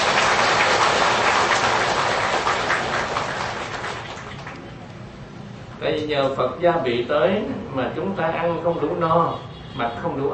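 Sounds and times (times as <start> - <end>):
round of applause: 0.0 - 4.9
speech: 5.9 - 10.3.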